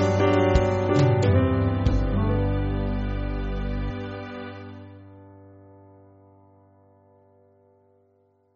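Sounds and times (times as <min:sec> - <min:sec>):
band backing track for churches: 0:00.0 - 0:04.7.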